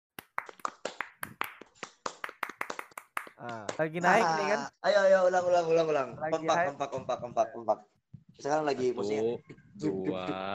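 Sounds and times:
scout rhythmic clapping routine: 0:00.2 - 0:03.9
speech: 0:03.4 - 0:10.5.

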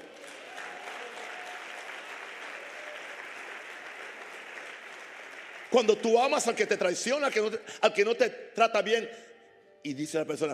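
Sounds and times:
audience applause: 0:00.0 - 0:06.8
speech: 0:05.7 - 0:10.5.

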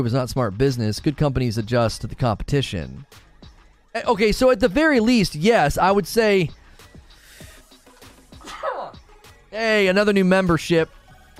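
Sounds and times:
speech: 0:00.0 - 0:03.2, 0:04.0 - 0:06.6, 0:09.5 - 0:11.0
person sneezing: 0:08.4 - 0:09.0.

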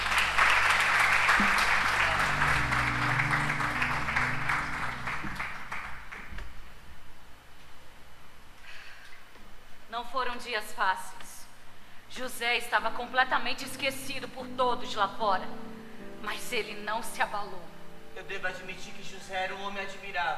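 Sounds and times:
applause: 0:00.0 - 0:06.7
speech: 0:10.5 - 0:11.2, 0:12.2 - 0:20.3.

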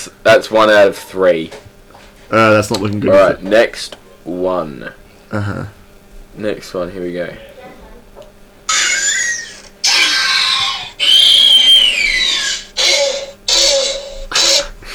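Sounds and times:
speech: 0:00.0 - 0:01.7, 0:02.3 - 0:05.8, 0:06.4 - 0:07.5
velociraptor screeches sound effect: 0:08.7 - 0:14.9.

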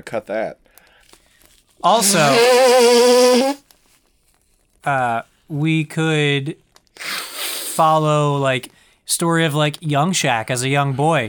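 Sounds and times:
speech: 0:00.0 - 0:00.8, 0:01.8 - 0:03.6, 0:04.8 - 0:07.1, 0:07.8 - 0:11.2
nose being blown hard: 0:01.8 - 0:03.6, 0:07.0 - 0:07.8.

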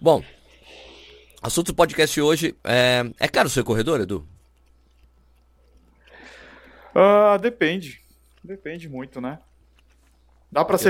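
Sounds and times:
speech: 0:00.0 - 0:00.4, 0:01.4 - 0:04.3, 0:07.0 - 0:09.5, 0:10.5 - 0:10.8
person chewing a sandwich: 0:03.2 - 0:10.8.

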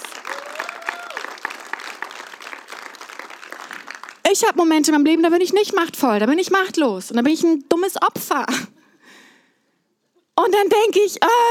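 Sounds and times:
audience applause: 0:00.0 - 0:04.2
speech: 0:04.3 - 0:08.8, 0:10.4 - 0:11.4.

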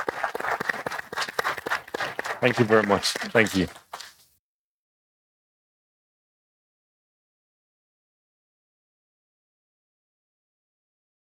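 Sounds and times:
audience applause: 0:00.0 - 0:03.9
speech: 0:02.4 - 0:03.8.

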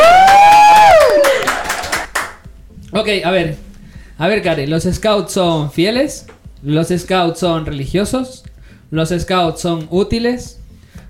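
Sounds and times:
applause: 0:00.0 - 0:02.4
speech: 0:03.0 - 0:03.6, 0:04.2 - 0:10.6.

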